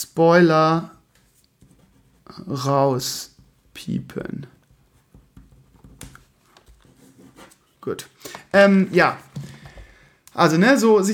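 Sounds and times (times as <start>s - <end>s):
speech: 0.1s - 1.0s, 2.3s - 4.6s, 7.8s - 9.5s, 10.4s - 11.1s
pen scratching across a sheet of paper writing large letters: 6.8s - 7.6s.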